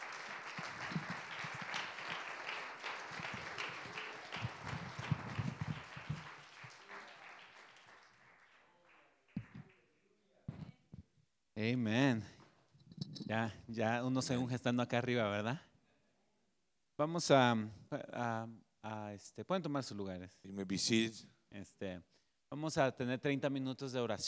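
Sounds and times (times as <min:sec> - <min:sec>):
crowd applauding: 0:00.0 - 0:09.8
speech: 0:11.6 - 0:12.3, 0:13.3 - 0:15.7, 0:17.0 - 0:24.2.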